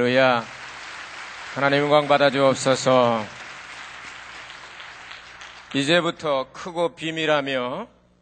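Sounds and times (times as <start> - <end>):
speech: 0.0 - 0.6, 1.5 - 3.4, 5.7 - 8.0
audience clapping: 0.0 - 6.3.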